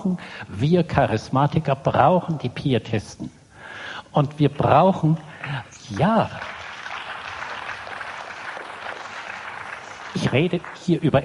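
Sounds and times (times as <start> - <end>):
speech: 0.0 - 3.4, 4.1 - 6.5, 10.2 - 11.2
audience clapping: 5.8 - 11.2.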